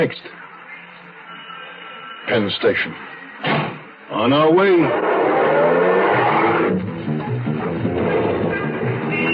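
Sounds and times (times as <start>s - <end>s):
speech: 0.0s - 0.4s, 2.3s - 5.2s
taxi engine accelerating as it pulls away: 4.8s - 9.2s.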